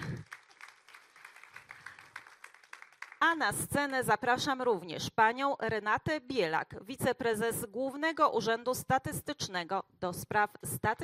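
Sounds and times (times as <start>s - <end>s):
audience applauding: 0.0s - 3.2s
speech: 3.2s - 11.0s.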